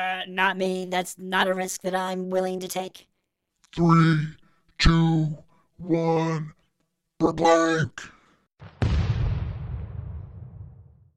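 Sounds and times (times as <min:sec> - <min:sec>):
speech: 0:00.0 - 0:03.1, 0:03.7 - 0:06.6, 0:07.2 - 0:08.8
robot's self-destruct explosion: 0:08.6 - 0:11.1.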